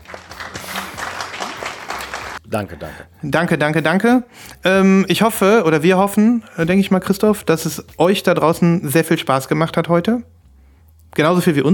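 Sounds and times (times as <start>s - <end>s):
applause: 0.0s - 2.4s
speech: 2.5s - 10.4s, 11.1s - 11.7s.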